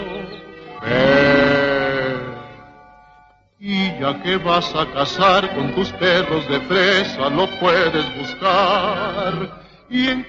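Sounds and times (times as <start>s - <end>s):
lamb bleating: 0.8s - 2.6s
speech: 4.0s - 10.2s.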